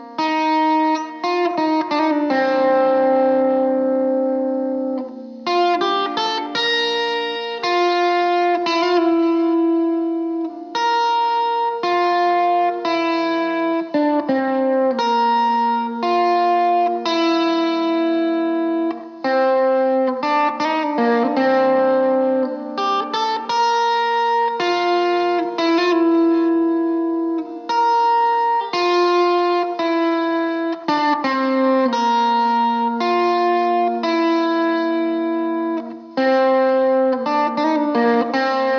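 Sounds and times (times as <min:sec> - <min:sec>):
guitar playing: 0:00.0 - 0:38.7.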